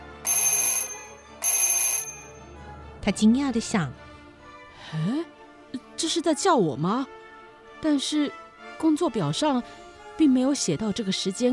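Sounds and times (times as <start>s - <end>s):
shrill bell ringing: 0.0s - 2.3s
speech: 3.0s - 4.0s, 4.9s - 5.4s, 6.1s - 7.2s, 7.8s - 11.5s.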